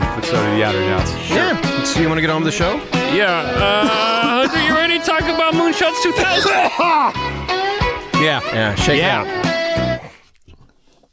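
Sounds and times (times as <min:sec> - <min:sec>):
speech: 0:00.2 - 0:07.5, 0:08.2 - 0:09.6
laughter: 0:03.4 - 0:07.2
person coughing: 0:06.2 - 0:07.1.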